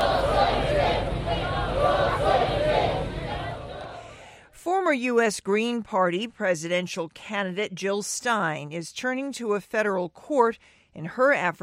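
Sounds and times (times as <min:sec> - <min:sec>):
crowd cheering and shouting along street procession: 0:00.0 - 0:04.1
speech: 0:04.9 - 0:11.6.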